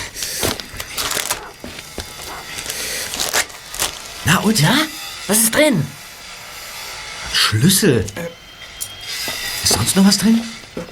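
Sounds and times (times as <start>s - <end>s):
envelope being torn open: 0.0s - 4.2s
speech: 4.3s - 6.0s, 7.5s - 8.4s, 9.8s - 10.9s.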